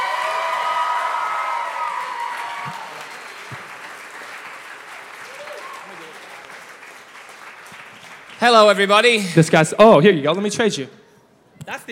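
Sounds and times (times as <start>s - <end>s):
youth church service audience applauding: 0.0s - 9.4s
speech: 8.4s - 11.0s, 11.7s - 11.9s.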